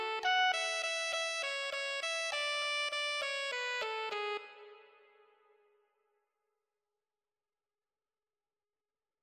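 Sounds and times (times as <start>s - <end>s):
alto saxophone: 0.0s - 5.5s.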